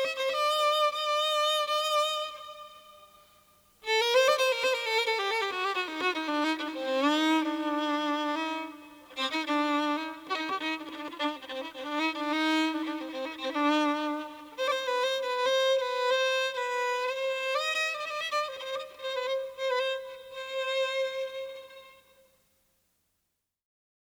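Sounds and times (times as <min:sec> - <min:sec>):
solo violin: 0:00.0 - 0:22.3.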